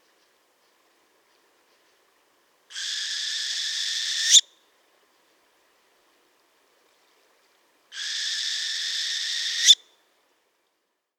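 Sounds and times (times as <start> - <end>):
northern hawk owl Surnia ulula calling: 2.8 - 4.4, 8.0 - 9.8.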